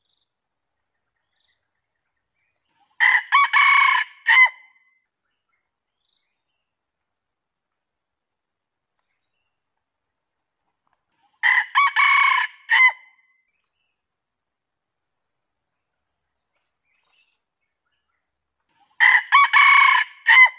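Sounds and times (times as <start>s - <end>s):
junglefowl crowing: 2.8s - 4.8s, 11.3s - 13.2s, 18.8s - 20.5s.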